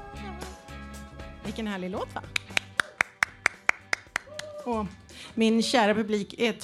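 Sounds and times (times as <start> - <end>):
speech: 1.5 - 2.5, 4.7 - 6.5
one person clapping alone: 2.3 - 4.8.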